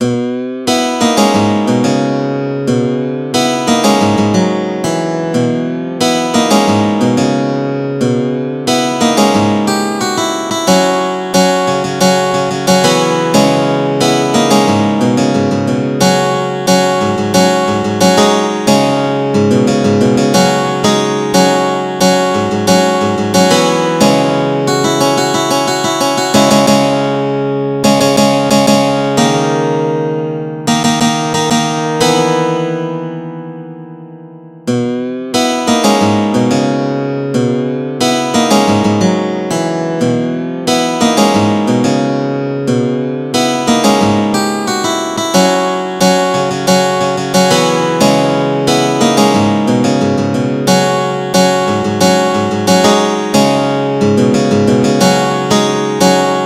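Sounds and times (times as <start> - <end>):
guitar solo: 0.0 - 56.4.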